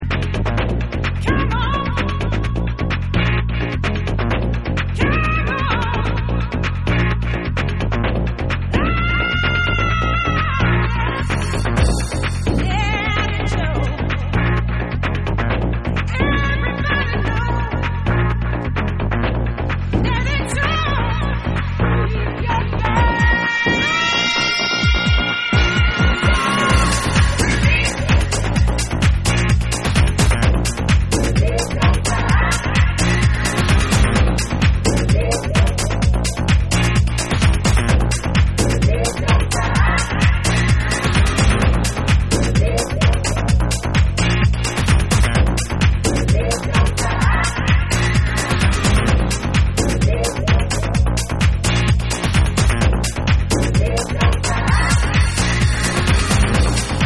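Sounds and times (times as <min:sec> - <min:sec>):
acid dub drums mix: 0:00.0 - 0:57.0.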